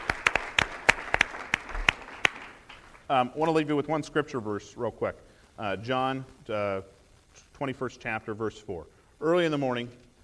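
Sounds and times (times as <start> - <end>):
audience applause: 0.0 - 3.1
speech: 3.1 - 7.0, 7.6 - 10.0.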